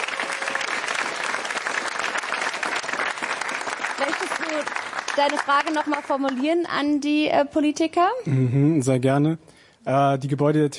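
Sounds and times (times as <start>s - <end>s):
audience applause: 0.0s - 6.4s
speech: 4.0s - 10.7s.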